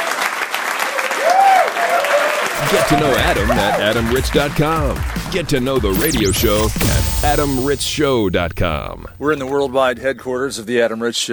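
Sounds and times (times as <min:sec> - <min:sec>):
round of applause: 0:00.0 - 0:02.6
speech: 0:02.7 - 0:11.3.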